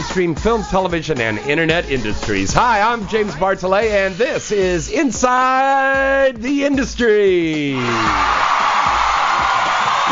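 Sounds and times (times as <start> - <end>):
speech: 0.2 - 8.5
crowd cheering and whooping: 7.8 - 10.1.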